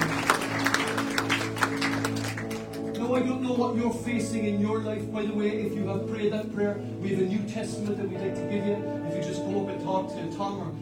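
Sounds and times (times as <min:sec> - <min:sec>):
church congregation applauding: 0:00.0 - 0:03.4
speech: 0:03.2 - 0:10.8.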